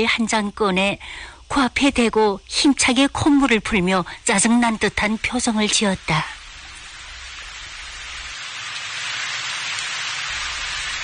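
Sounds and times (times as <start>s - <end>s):
speech: 0.0s - 6.4s
heavy rain falling: 2.9s - 11.0s.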